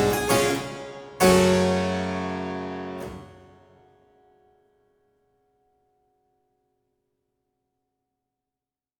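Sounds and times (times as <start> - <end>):
harpsichord piece in G minor: 0.0 - 3.7.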